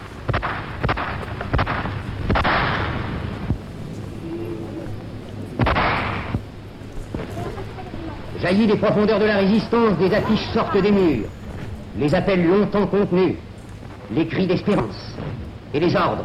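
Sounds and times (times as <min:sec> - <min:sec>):
gunshots: 0:00.0 - 0:03.6, 0:05.6 - 0:06.4
laughter: 0:07.1 - 0:13.2
speech: 0:08.5 - 0:11.4, 0:12.0 - 0:13.5, 0:14.1 - 0:16.2.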